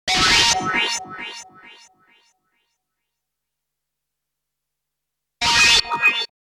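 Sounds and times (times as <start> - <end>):
synth: 0.1 - 2.2.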